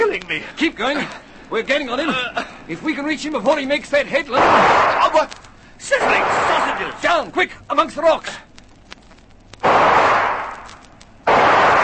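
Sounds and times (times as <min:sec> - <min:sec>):
speech: 0:00.2 - 0:08.5
gunshots fired from cover: 0:04.4 - 0:05.3, 0:06.0 - 0:07.0, 0:09.6 - 0:11.8.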